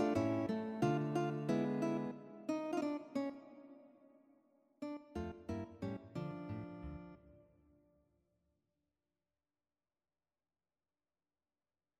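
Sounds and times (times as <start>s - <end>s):
guitar duet on two guitars: 0.0s - 3.9s, 4.8s - 7.2s.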